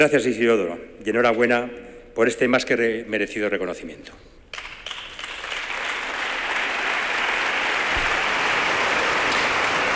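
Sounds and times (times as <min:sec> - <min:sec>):
speech: 0:00.0 - 0:04.3
audience applause: 0:04.6 - 0:09.9.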